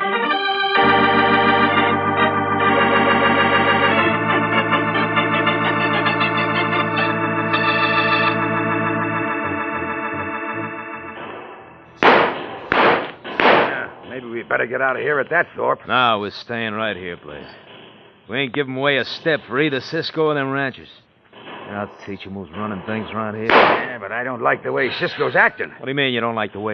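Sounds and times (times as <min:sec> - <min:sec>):
dramatic music in a radio drama: 0:00.8 - 0:13.7
gunshots in a radio drama: 0:12.0 - 0:14.1, 0:23.5 - 0:24.0
speech: 0:14.6 - 0:17.7, 0:18.3 - 0:21.0, 0:21.7 - 0:26.7.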